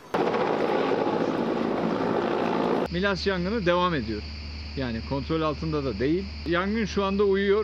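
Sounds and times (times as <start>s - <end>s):
firefighting helicopters: 0.1s - 2.9s
speech: 3.0s - 7.6s.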